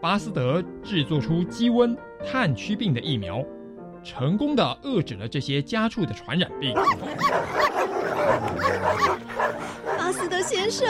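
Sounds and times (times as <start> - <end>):
speech: 0.0 - 10.8
agitated dogs barking: 6.6 - 10.8.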